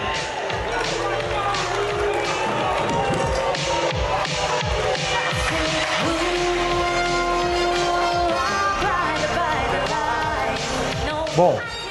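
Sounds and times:
crowd booing: 0:00.0 - 0:11.0
speech: 0:11.4 - 0:11.8.

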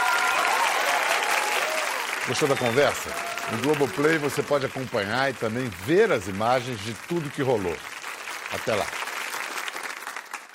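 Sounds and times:
voices cheering: 0:00.0 - 0:05.4
audience applause: 0:00.0 - 0:10.5
speech: 0:02.3 - 0:07.9, 0:08.5 - 0:09.0.

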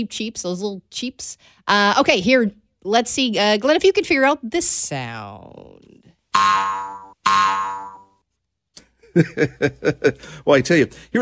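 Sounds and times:
speech: 0:00.0 - 0:07.9, 0:09.2 - 0:11.1
cartoon boings of a bunny bouncing: 0:06.3 - 0:08.2
laughter: 0:09.0 - 0:10.4.

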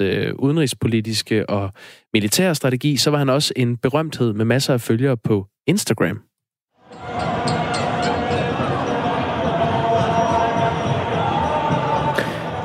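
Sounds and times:
speech: 0:00.0 - 0:06.3
thousands of mourners at funeral procession: 0:06.8 - 0:12.6.

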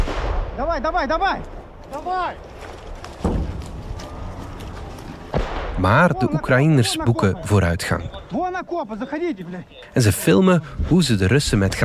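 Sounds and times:
gunfire in combat: 0:00.0 - 0:00.9, 0:05.3 - 0:06.0
artillery fire in combat: 0:00.0 - 0:01.5, 0:05.3 - 0:05.8
speech: 0:00.6 - 0:02.5, 0:05.8 - 0:11.8.

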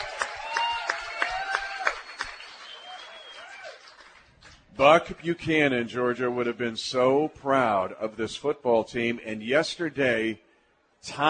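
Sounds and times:
audience cheering and applause: 0:00.0 - 0:04.3
speech: 0:04.8 - 0:11.2.

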